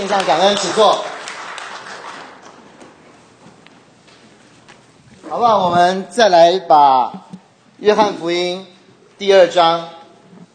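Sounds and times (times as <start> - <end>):
speech: 0.0 - 1.1, 5.3 - 10.0
crowd clapping: 0.0 - 3.0.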